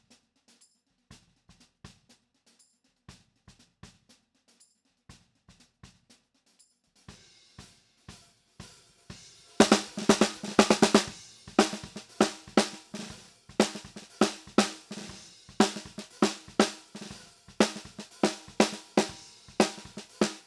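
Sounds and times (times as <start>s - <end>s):
snare drum: 9.1s - 20.4s.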